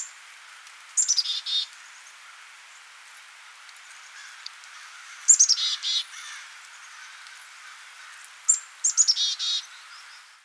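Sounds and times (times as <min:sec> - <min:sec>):
Black-capped chickadee Poecile atricapillus calling: 0:04.2 - 0:09.9.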